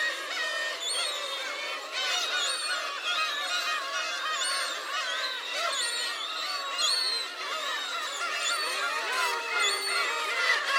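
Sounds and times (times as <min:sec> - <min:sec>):
large flock of gulls calling in Hachinohe Japan: 0:00.0 - 0:10.7.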